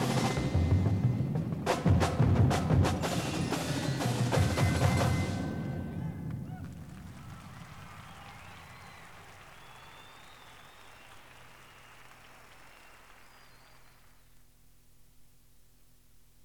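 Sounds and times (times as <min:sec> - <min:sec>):
drum solo: 0:00.0 - 0:05.4.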